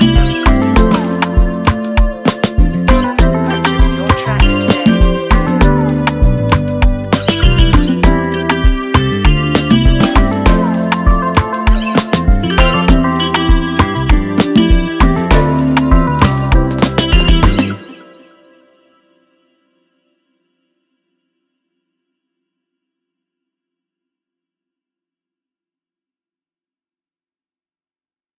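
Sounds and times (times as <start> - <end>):
beat: 0.0 - 17.8.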